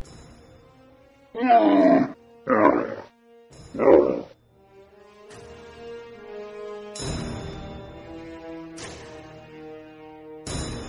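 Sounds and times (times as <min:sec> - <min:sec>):
speech: 0:01.4 - 0:02.7, 0:03.8 - 0:04.2
camel grunting: 0:01.4 - 0:03.1, 0:03.8 - 0:04.3.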